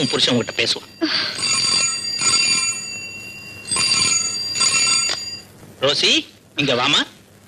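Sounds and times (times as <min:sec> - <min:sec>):
speech: 0:00.0 - 0:01.6, 0:05.8 - 0:07.1
telephone bell ringing with a call from the police station: 0:00.0 - 0:05.5.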